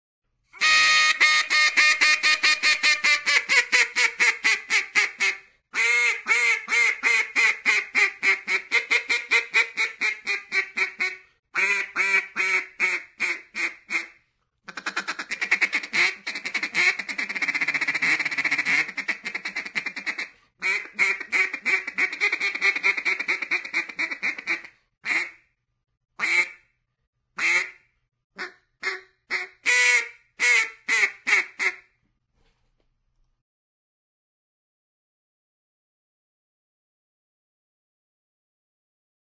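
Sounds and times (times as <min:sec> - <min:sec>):
duck: 0:00.6 - 0:25.4, 0:26.2 - 0:26.6, 0:27.4 - 0:27.8, 0:28.4 - 0:31.9.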